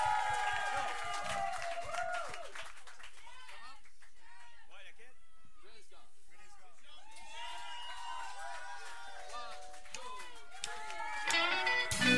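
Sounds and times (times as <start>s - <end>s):
whoops and crowd voices: 0.0s - 2.5s, 7.0s - 9.5s, 10.2s - 11.9s
audience clapping at a blues band fundraiser show: 0.0s - 4.6s, 7.2s - 12.0s.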